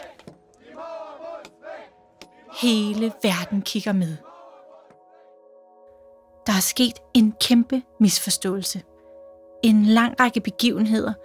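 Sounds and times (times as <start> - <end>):
crowd shouting protest chants: 0.0 - 5.3
speech: 2.6 - 4.3, 6.6 - 8.9, 9.6 - 11.2.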